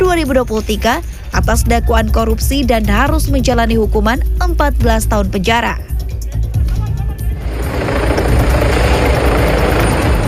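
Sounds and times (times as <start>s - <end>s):
speech: 0.2s - 6.0s
air ambulance helicopter landing in Trafalgar Square, London: 7.2s - 10.2s.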